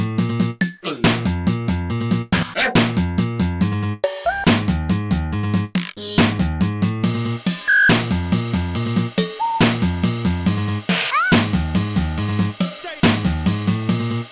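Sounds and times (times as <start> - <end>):
bass jam: 0.0 - 14.3.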